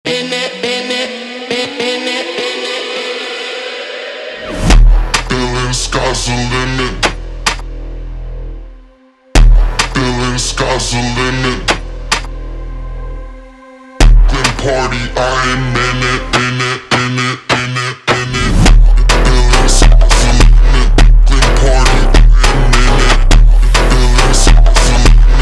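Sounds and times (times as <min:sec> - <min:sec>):
super slowed Brazilian phonk music: 0:00.1 - 0:25.4.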